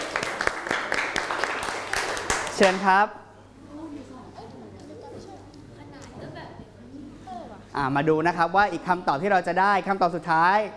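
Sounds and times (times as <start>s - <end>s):
classroom applause: 0.0s - 2.9s
speech: 2.6s - 3.2s, 7.8s - 10.7s.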